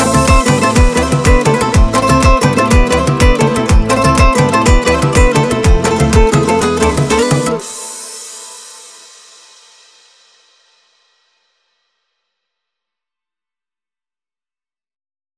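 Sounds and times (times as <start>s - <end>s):
saxophone mix: 0.0s - 7.8s.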